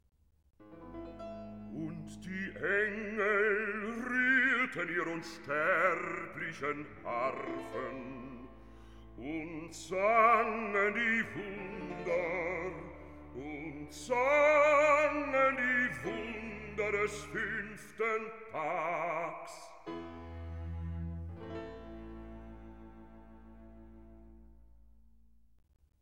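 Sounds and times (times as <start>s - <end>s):
sung recitative: 1.7s - 8.6s, 9.2s - 19.8s.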